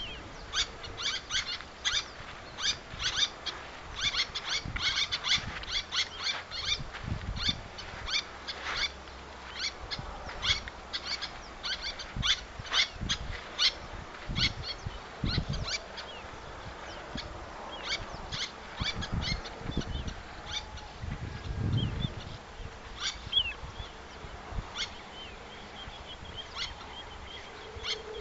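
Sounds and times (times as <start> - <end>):
little tern Sterna albifrons calling: 0.0 - 28.1.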